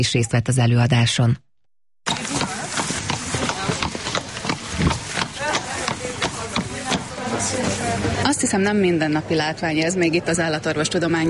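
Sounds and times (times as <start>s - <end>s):
speech: 0.0s - 1.4s, 7.5s - 11.2s
horse hooves clip-clopping across a hard indoor floor: 2.1s - 7.0s
murmur of voices: 2.1s - 11.2s.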